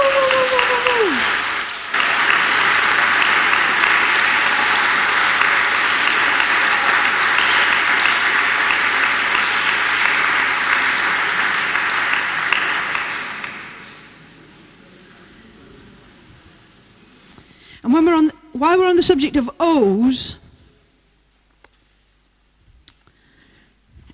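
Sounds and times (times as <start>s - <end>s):
audience applause: 0.0s - 14.2s
speech: 19.0s - 20.4s.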